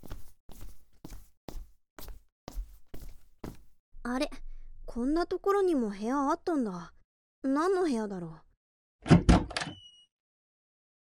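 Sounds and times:
footsteps walking around inside a house: 0.0 - 3.8
speech: 4.1 - 8.4.

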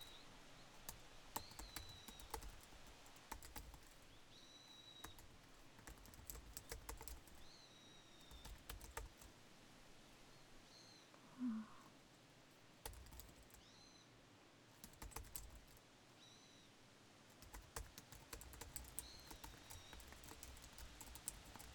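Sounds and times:
wind: 0.0 - 21.7
working at a PC: 0.8 - 4.0, 5.0 - 7.4, 8.2 - 9.4, 12.8 - 13.6, 14.8 - 15.8, 17.4 - 21.7.

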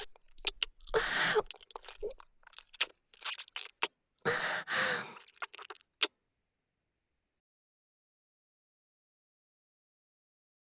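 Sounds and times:
kissing: 0.0 - 6.1.

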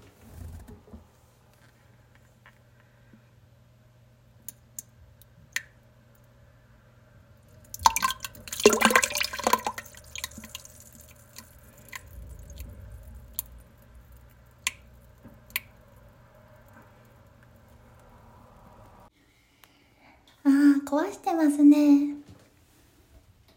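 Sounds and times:
pooping into toilet water: 7.6 - 19.0
speech: 20.9 - 22.1.

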